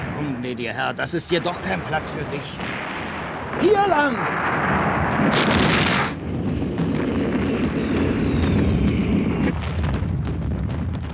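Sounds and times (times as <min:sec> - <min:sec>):
cannons firing canister shot at the 1812 Battle of Borodino: 0:00.0 - 0:11.1
speech: 0:00.2 - 0:05.8
high whistling streaks sweeping down: 0:06.0 - 0:09.6.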